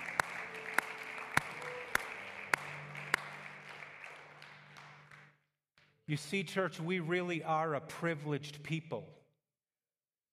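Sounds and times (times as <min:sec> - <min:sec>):
audience clapping in unison: 0:00.0 - 0:05.4
speech: 0:06.1 - 0:09.2.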